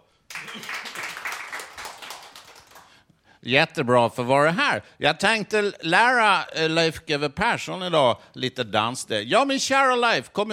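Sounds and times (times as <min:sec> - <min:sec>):
applause: 0:00.2 - 0:03.0
speech: 0:03.4 - 0:10.5.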